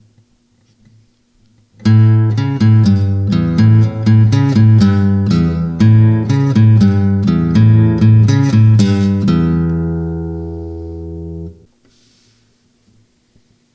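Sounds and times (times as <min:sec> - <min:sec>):
guitar: 0:01.7 - 0:11.7.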